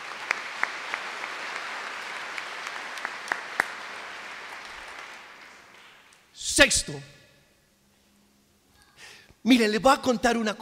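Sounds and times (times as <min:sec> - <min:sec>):
audience applause: 0:00.0 - 0:06.1
speech: 0:06.6 - 0:07.2, 0:09.5 - 0:10.5.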